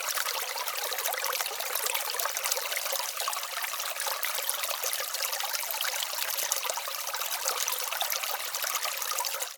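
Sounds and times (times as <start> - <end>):
creek flowing: 0.0 - 9.4.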